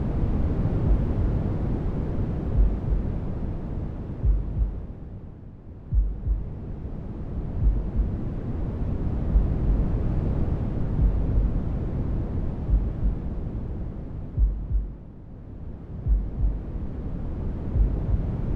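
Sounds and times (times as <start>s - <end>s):
noise: 0.0s - 18.5s
heartbeat: 0.8s - 1.2s, 2.5s - 3.1s, 4.2s - 4.9s, 5.9s - 6.5s, 7.6s - 8.2s, 9.3s - 9.8s, 11.0s - 11.6s, 12.6s - 13.2s, 14.4s - 15.0s, 16.0s - 16.7s, 17.7s - 18.4s.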